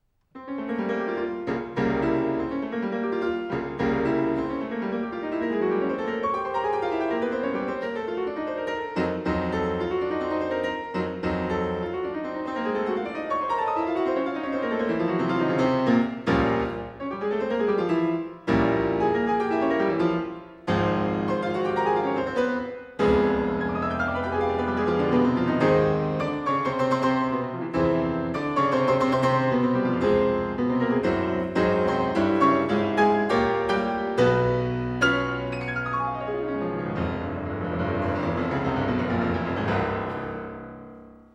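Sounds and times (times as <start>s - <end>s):
piano prelude in F minor: 0.4s - 41.3s.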